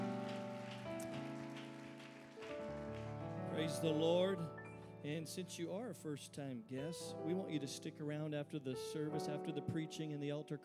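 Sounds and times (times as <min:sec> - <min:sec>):
audience clapping: 0:00.0 - 0:04.4
sustained organ-like chords: 0:00.0 - 0:10.6
speech: 0:03.6 - 0:10.6.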